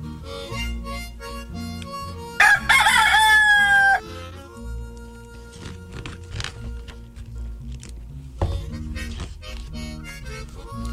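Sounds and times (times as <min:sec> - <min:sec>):
rooster crowing: 0:02.4 - 0:04.1.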